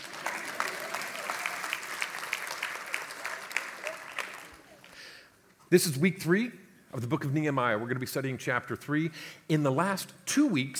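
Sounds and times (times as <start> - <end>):
audience applause: 0.0 - 5.0
speech: 5.7 - 10.7.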